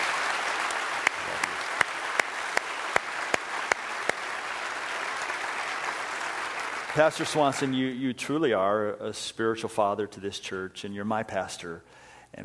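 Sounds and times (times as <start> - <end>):
audience applauding: 0.0 - 7.9
speech: 7.0 - 12.4.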